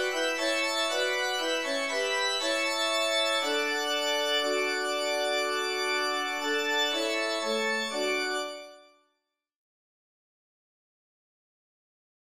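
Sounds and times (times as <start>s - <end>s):
church music: 0.0s - 8.8s.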